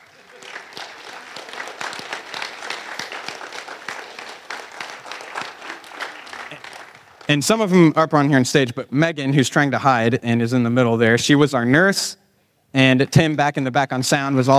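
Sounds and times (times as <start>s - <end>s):
applause: 0.0s - 7.5s
speech: 7.3s - 14.5s.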